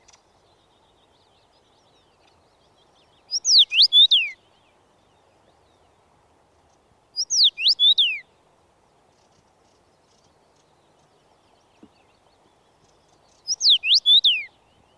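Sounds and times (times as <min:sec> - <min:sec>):
Common Rosefinch whistled song: 0:03.3 - 0:04.4, 0:07.2 - 0:08.2, 0:13.5 - 0:14.5.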